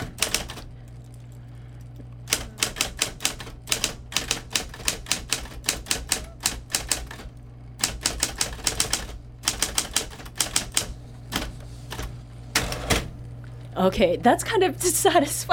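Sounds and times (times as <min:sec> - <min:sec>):
electric typewriter key strikes: 0:00.0 - 0:00.6, 0:02.3 - 0:12.0
electric typewriter motor hum: 0:00.0 - 0:15.5
speech: 0:13.8 - 0:15.5.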